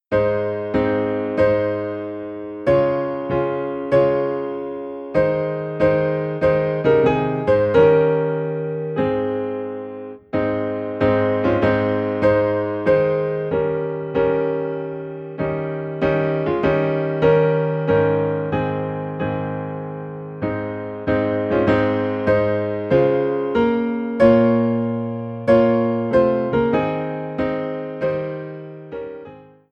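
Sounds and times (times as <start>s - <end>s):
piano: 0.0s - 29.6s.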